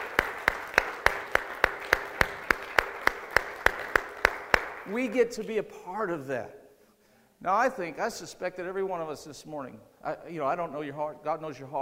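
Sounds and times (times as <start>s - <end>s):
audience praise clapping: 0.0s - 5.2s
speech: 4.9s - 6.6s, 7.4s - 11.7s.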